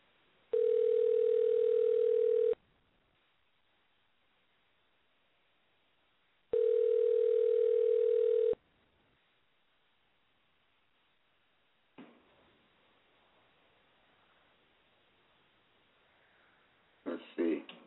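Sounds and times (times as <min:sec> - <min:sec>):
outgoing call ringback tone: 0:00.5 - 0:02.6, 0:06.5 - 0:08.6.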